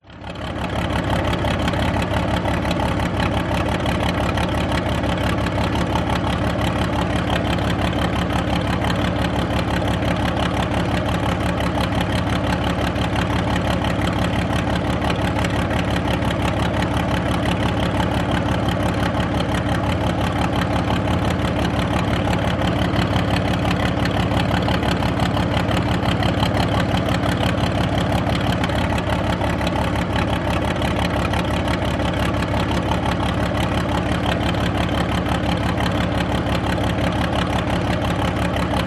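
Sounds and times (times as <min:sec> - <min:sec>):
1939 Matilda Mark 2 tank idling at the rear exhaust: 0:00.0 - 0:38.8.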